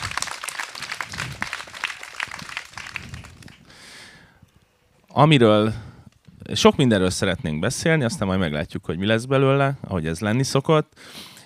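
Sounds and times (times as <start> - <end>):
audience applause: 0.0 - 3.7
speech: 5.2 - 5.9, 6.5 - 11.3.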